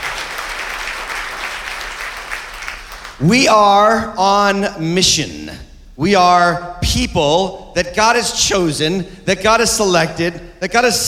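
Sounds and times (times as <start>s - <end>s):
church congregation in North Attleboro applauding: 0.0s - 3.4s
speech: 3.2s - 11.0s.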